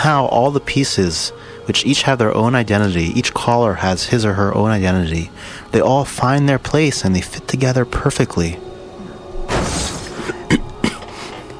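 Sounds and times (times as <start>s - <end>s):
speech: 0.0s - 8.7s
faint steady hum: 0.0s - 11.5s
person coughing: 10.1s - 11.4s.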